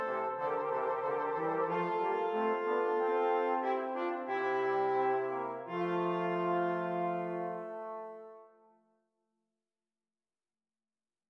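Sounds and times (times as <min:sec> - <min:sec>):
fugue in F major: 0:00.0 - 0:08.5.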